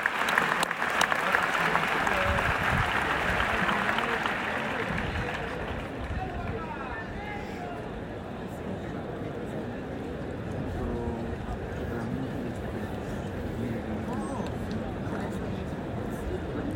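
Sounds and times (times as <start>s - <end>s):
bullfight crowd cheering: 0.0s - 7.9s
bullfight crowd murmur at the Plaza de toros de la Real Maestranza in Seville: 0.0s - 16.7s.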